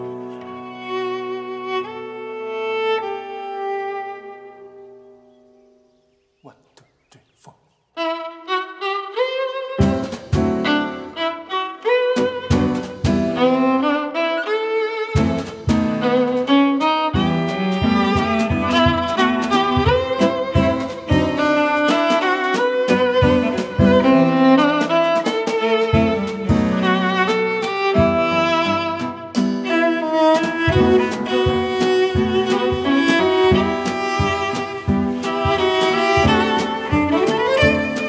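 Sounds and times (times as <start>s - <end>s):
violin: 0.0s - 5.2s, 7.9s - 38.0s
piano: 0.0s - 5.9s, 8.1s - 38.0s
cello: 0.0s - 6.0s, 7.9s - 38.0s
jazz drum: 9.8s - 11.1s, 12.2s - 13.8s, 15.2s - 38.0s.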